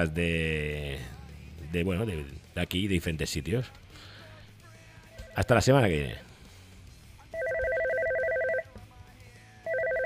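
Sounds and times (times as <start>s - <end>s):
speech: 0.0s - 4.1s, 5.4s - 6.3s
telephone ringing with a bright electronic warbling trill: 7.3s - 8.8s, 9.7s - 10.0s.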